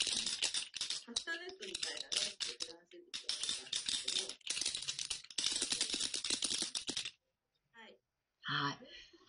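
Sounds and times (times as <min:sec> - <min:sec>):
naruko wooden clappers being rattled: 0:00.0 - 0:07.2.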